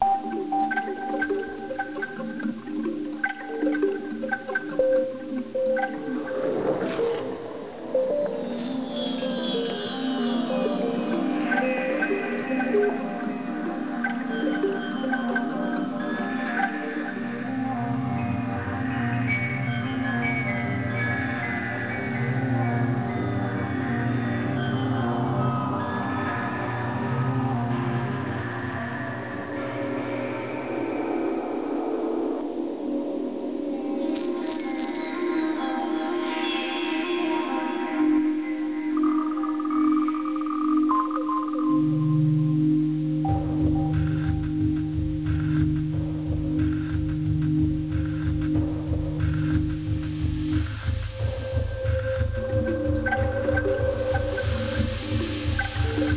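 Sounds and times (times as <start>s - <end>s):
ambient music: 0.0s - 56.1s.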